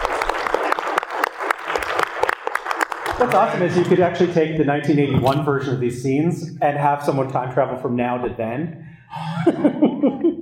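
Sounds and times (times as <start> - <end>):
audience applause: 0.0 - 3.9
laughter: 3.2 - 4.2, 9.1 - 10.4
speech: 3.2 - 10.4.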